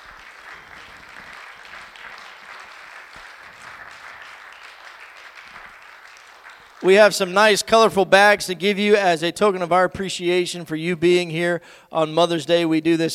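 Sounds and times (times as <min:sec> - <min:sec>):
audience applause: 0:00.0 - 0:07.1
speech: 0:06.8 - 0:13.1.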